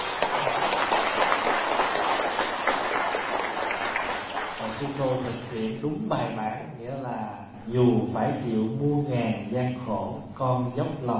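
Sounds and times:
audience applause: 0.0s - 5.2s
speech: 5.0s - 11.1s.

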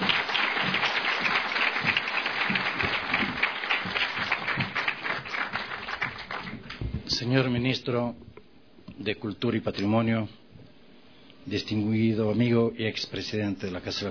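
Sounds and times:
audience applause: 0.0s - 6.8s
speech: 7.2s - 8.3s, 9.0s - 10.4s, 11.4s - 14.0s.

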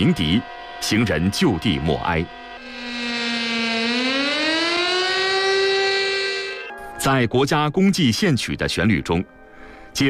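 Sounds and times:
speech: 0.0s - 2.4s, 7.0s - 9.4s
air raid siren wailing: 0.0s - 7.0s.

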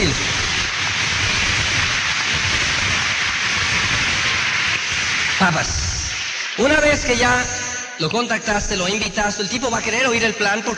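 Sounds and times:
audience applause: 0.0s - 8.1s
speech: 5.4s - 5.8s, 6.6s - 10.7s.

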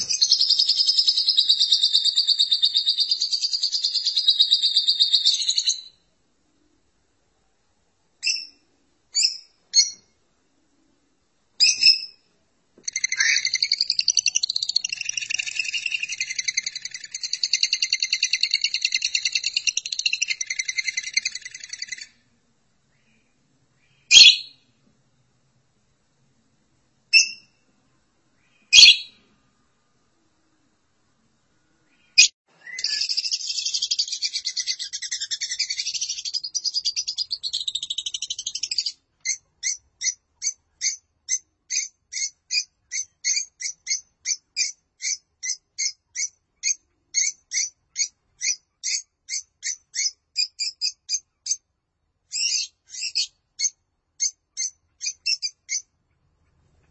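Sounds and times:
lovebird chirping and chattering: 0.0s - 5.9s, 8.2s - 8.6s, 9.2s - 10.1s, 11.6s - 12.2s, 12.8s - 22.2s, 23.9s - 24.6s, 27.1s - 27.5s, 28.5s - 29.2s, 32.0s - 51.6s, 52.3s - 55.9s.

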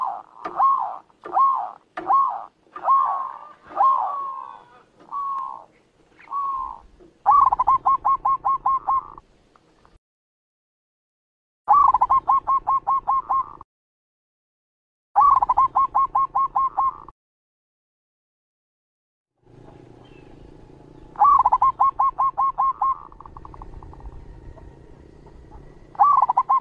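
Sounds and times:
zebra dove cooing song: 0.0s - 9.2s, 11.7s - 13.6s, 15.2s - 17.1s, 21.0s - 26.5s.

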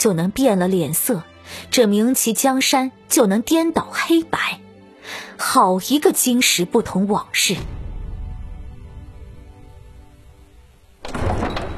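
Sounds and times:
speech: 0.0s - 7.8s
palace door creaking open: 11.0s - 11.7s.

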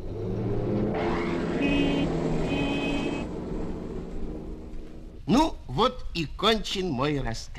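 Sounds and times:
car engine starting and revving: 0.0s - 5.3s
speech: 5.3s - 7.5s.

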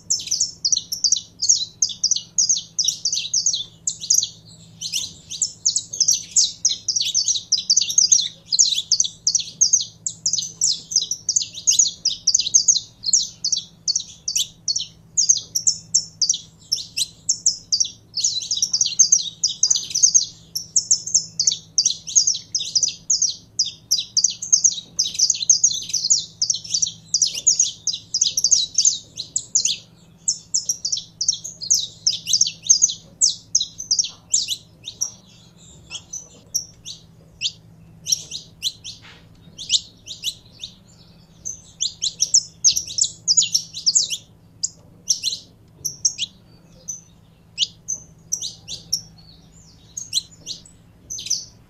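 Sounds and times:
canary song: 0.0s - 51.6s
faint low hum: 0.0s - 51.6s.

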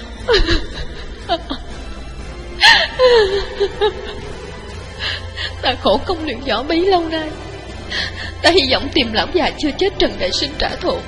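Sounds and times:
speech: 0.2s - 1.6s, 3.1s - 4.3s, 5.6s - 11.0s
old woman crying loudly: 0.2s - 1.9s, 2.6s - 5.6s.

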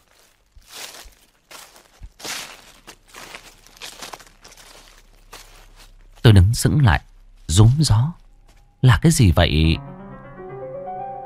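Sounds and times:
rustling in a bush: 0.0s - 6.3s
speech: 6.3s - 8.2s, 8.8s - 9.9s.

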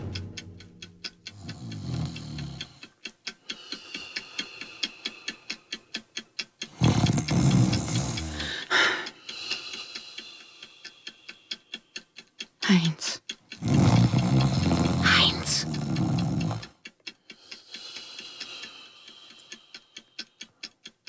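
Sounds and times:
man snoring loudly: 1.3s - 2.8s, 6.8s - 8.7s, 13.6s - 16.7s.

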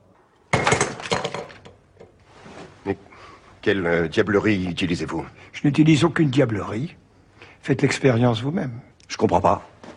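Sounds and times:
paper ball and box of sand crashing onto a hard floor: 0.5s - 1.8s
speech: 2.8s - 7.0s, 7.6s - 9.7s.

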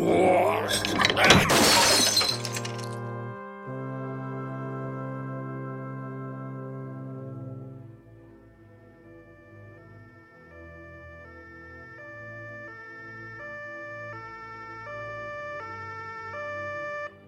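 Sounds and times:
glass display case shattering: 0.6s - 3.0s.

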